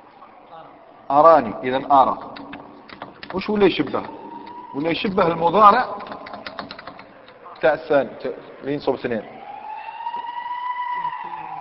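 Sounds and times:
speech: 0:01.1 - 0:02.5, 0:03.3 - 0:06.1, 0:07.6 - 0:09.4
ambulance siren wailing outside: 0:03.3 - 0:06.3, 0:09.0 - 0:11.5.

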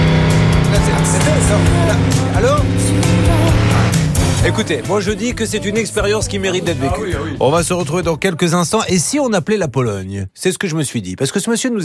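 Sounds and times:
race car engine passing: 0:00.0 - 0:07.3
speech: 0:04.5 - 0:11.8.

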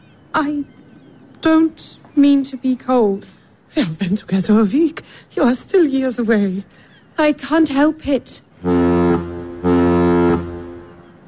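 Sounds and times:
speech: 0:00.4 - 0:00.8, 0:01.4 - 0:08.9
ship's horn blasting before departure: 0:08.6 - 0:11.2.

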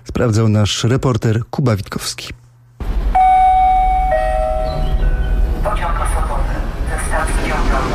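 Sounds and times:
speech: 0:00.2 - 0:02.4
Koleje Mazowieckie commuter train arriving in Poland: 0:02.8 - 0:07.9.

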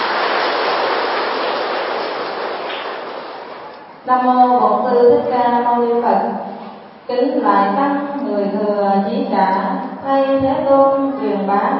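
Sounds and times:
audience applause: 0:00.0 - 0:04.0
speech: 0:04.1 - 0:06.0, 0:07.1 - 0:11.7.

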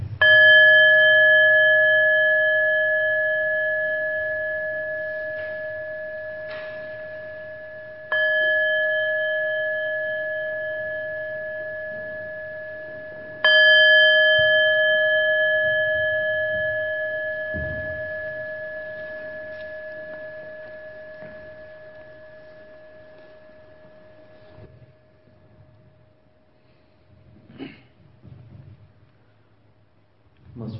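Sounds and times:
meditation bell ringing at the close of a loving-kindness meditation: 0:00.2 - 0:27.3.

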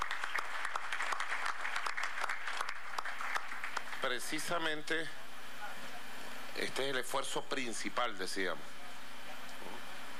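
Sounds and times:
audience applauding Venezuelan farm workers: 0:00.0 - 0:04.6
speech: 0:04.0 - 0:05.2, 0:06.6 - 0:08.8.

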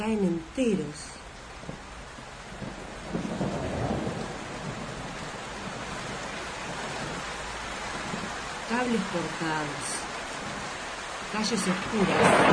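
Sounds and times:
heavy rain: 0:00.0 - 0:12.5
speech: 0:00.1 - 0:01.8, 0:08.8 - 0:10.0, 0:11.3 - 0:12.5
thunder: 0:02.4 - 0:08.7, 0:10.1 - 0:10.9, 0:11.7 - 0:12.5.

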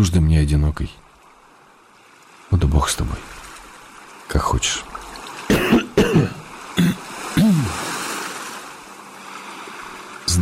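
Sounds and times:
speech: 0:00.0 - 0:01.0, 0:02.5 - 0:03.4, 0:04.3 - 0:04.9
man coughing: 0:05.5 - 0:07.8.

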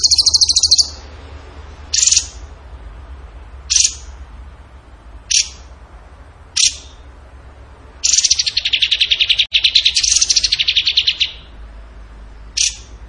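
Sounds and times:
bird chips and buzzy trill: 0:00.0 - 0:01.0, 0:01.9 - 0:02.4, 0:08.0 - 0:11.5, 0:12.5 - 0:13.0.

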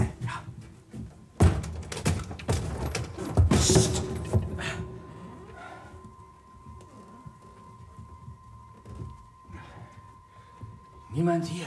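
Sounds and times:
door knocks and rattles as it swings and is handled: 0:01.4 - 0:04.5
speech: 0:11.4 - 0:11.6.

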